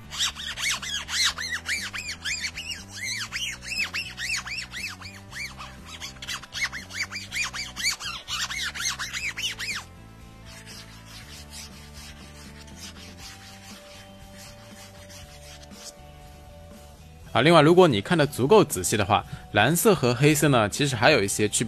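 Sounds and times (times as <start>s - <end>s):
fingernail scraping a phone's textured back panel: 0.0s - 16.0s
speech: 17.4s - 21.6s.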